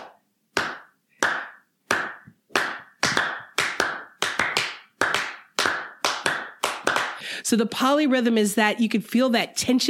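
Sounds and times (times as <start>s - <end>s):
sharp crisp handclaps clapping a steady pulse: 0.0s - 7.2s
speech: 7.4s - 9.8s.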